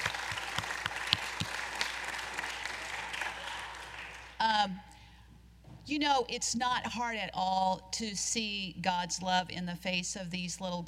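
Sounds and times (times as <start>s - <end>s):
audience applause: 0.0s - 4.4s
speech: 5.9s - 10.8s.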